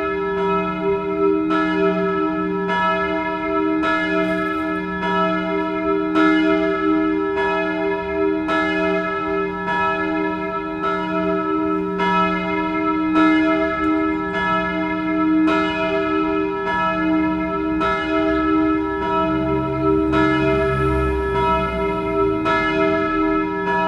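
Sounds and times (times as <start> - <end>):
church bells ringing a noon peal in Moudon: 0.0 - 23.8.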